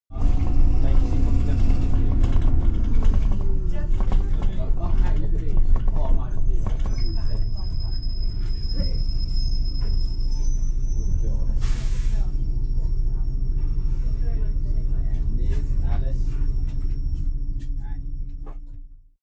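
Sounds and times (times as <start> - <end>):
bus ride: 0.1 - 19.1.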